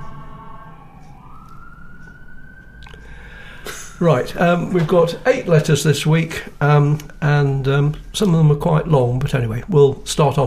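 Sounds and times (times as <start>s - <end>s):
emergency vehicle siren wailing while passing: 0.0s - 10.0s
speech: 4.0s - 10.4s.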